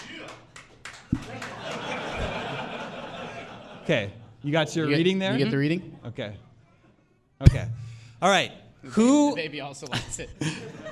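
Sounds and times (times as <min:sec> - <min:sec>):
audience clapping for a game: 0:00.0 - 0:02.6
laughter: 0:01.1 - 0:06.5, 0:09.8 - 0:10.8
speech: 0:03.9 - 0:06.5, 0:07.4 - 0:10.8.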